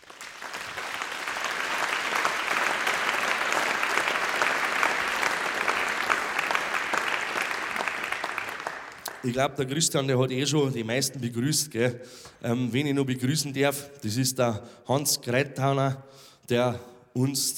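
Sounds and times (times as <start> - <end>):
audience applause: 0.0 - 9.3
speech: 9.2 - 17.5.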